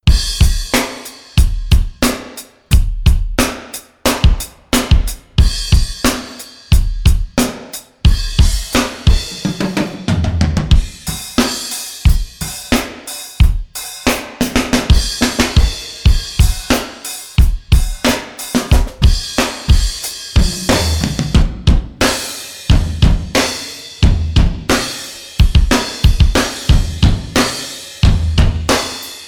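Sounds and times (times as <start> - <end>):
drum mix sample: 0.0 - 29.2.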